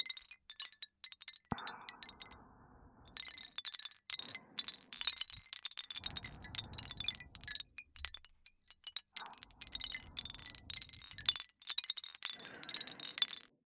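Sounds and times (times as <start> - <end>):
wooden wind chime: 0.0 - 2.5, 3.1 - 13.6
person breathing: 1.5 - 7.8, 9.1 - 11.4, 12.3 - 13.5.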